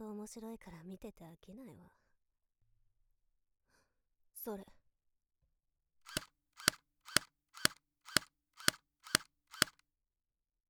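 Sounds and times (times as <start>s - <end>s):
speech: 0.2s - 2.0s, 4.4s - 4.8s
airsoft gun shots: 6.1s - 9.8s.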